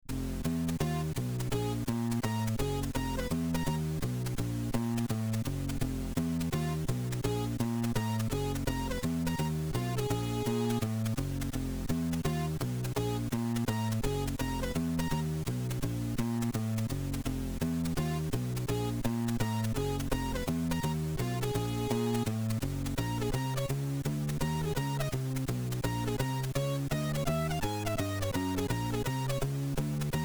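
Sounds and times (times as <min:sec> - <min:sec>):
jazz music: 0:00.1 - 0:30.2.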